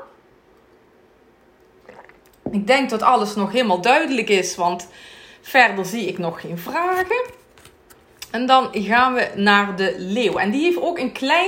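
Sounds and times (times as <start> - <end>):
faint low hum: 0.0 - 11.4
person sipping a drink: 1.6 - 2.5
speech: 1.9 - 7.4, 8.3 - 11.4.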